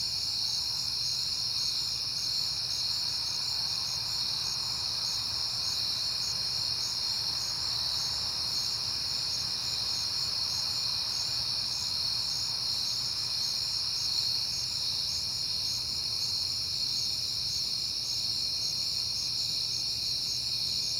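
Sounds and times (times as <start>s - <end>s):
crickets chirping: 0.0s - 20.9s.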